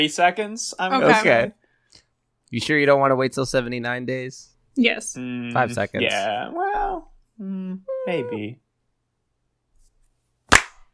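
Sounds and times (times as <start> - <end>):
speech: 0.0 - 1.6, 2.5 - 8.6
single hand clap: 10.5 - 10.9.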